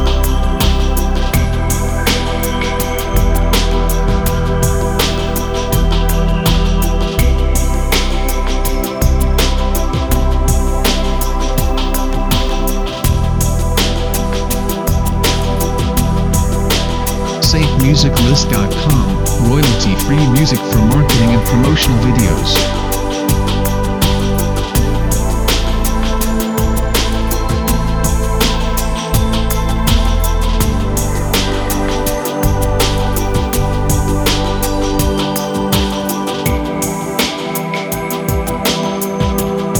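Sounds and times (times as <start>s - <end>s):
ancient soundscape: 0.0s - 39.7s.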